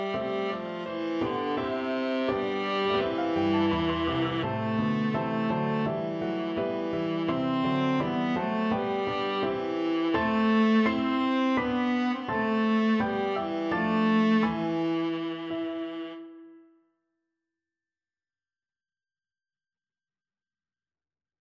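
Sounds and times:
viola folk melody: 0.0 - 16.8.

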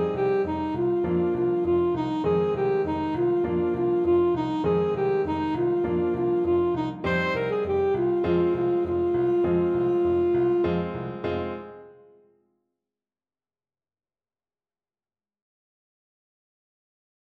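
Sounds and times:
alto saxophone: 0.0 - 11.4.

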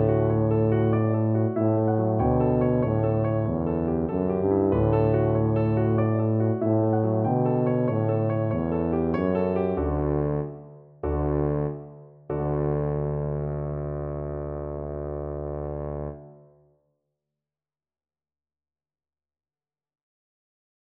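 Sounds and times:
tuba playing scene finale: 0.0 - 16.4.

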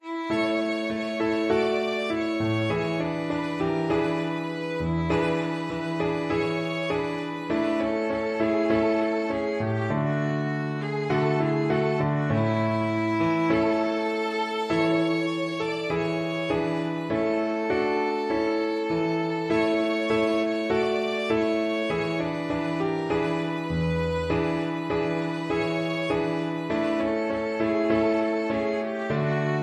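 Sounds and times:
violin: 0.0 - 29.6.

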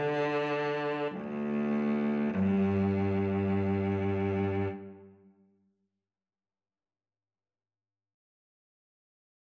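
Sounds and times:
cello: 0.0 - 5.4
violin: 0.0 - 5.4.

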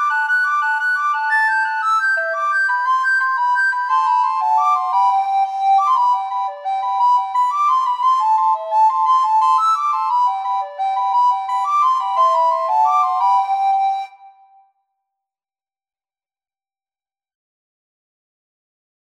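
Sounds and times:
recorder trio playing: 0.0 - 14.1.

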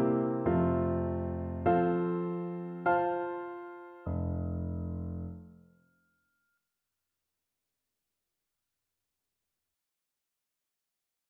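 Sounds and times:
four-hands piano duet: 0.0 - 5.4.

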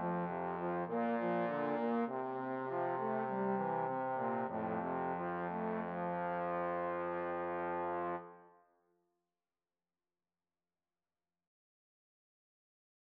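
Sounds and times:
trombone trio: 0.0 - 8.3.

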